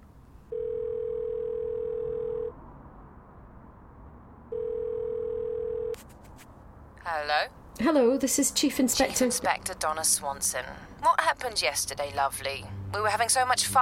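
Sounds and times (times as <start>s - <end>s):
telephone ringing tone in earpiece: 0.5s - 2.6s, 4.5s - 6.0s
speech: 7.1s - 13.8s.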